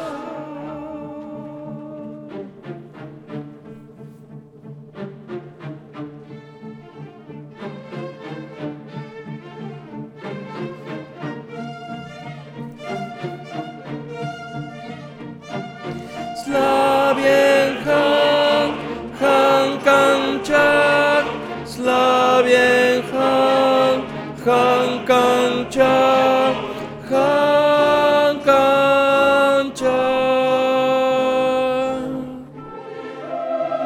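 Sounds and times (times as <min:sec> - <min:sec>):
tenors singing opera repertoire: 0:00.0 - 0:03.1, 0:15.9 - 0:33.8.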